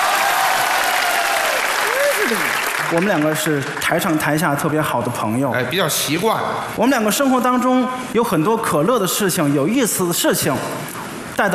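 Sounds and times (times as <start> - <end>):
audience applause for a comedy duo on stage: 0.0 - 4.4
speech: 2.3 - 11.5.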